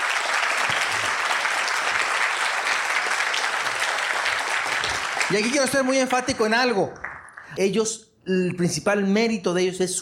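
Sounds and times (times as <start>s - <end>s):
audience applause: 0.0s - 7.6s
speech: 5.3s - 10.0s.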